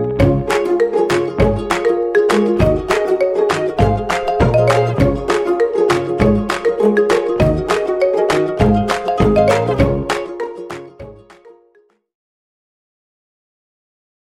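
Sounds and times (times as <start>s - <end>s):
double time step routine music: 0.2s - 11.5s.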